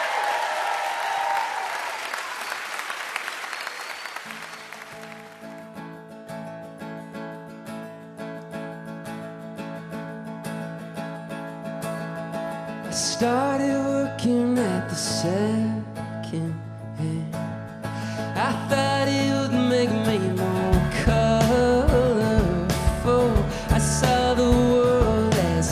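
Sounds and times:
audience applause welcoming a band: 0.0 - 5.8
strummed instrumental music: 5.0 - 25.7
speech: 13.0 - 17.2.

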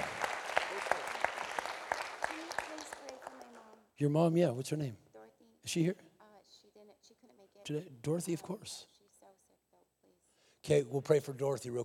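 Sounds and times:
audience applause: 0.0 - 3.6
speech: 4.0 - 5.0, 5.6 - 6.1, 7.7 - 8.9, 10.6 - 11.8.

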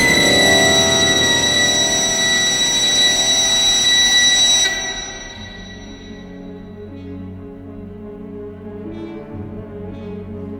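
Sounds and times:
shrill whistle opening the orchestral score: 0.0 - 6.6
orchestral swell of stage musical score: 0.0 - 10.5.

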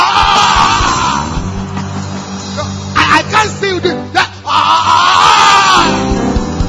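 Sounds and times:
crowd roaring in imitation of a lion: 0.0 - 2.8, 4.3 - 6.5.

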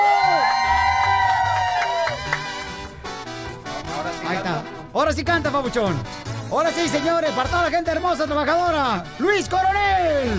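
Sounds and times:
audience applause: 0.0 - 2.9
speech: 5.1 - 10.3.

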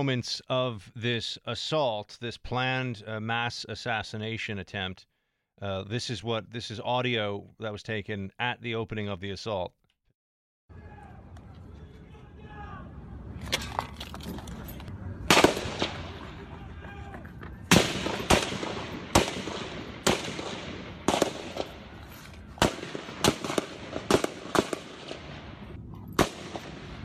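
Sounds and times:
speech: 0.0 - 9.8
gunshots from a gun battle between Capitol Police and a gunman with a rifle: 15.2 - 16.6, 17.6 - 27.0.

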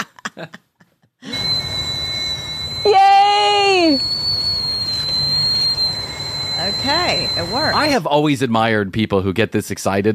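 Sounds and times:
speech: 0.4 - 0.6, 6.7 - 10.1
tea kettle whistling: 1.2 - 8.1.

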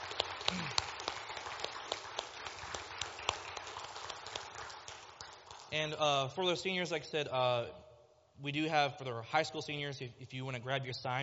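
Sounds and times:
audience applause for graduating seniors: 0.0 - 5.7
speech: 5.7 - 7.8, 8.4 - 11.2.

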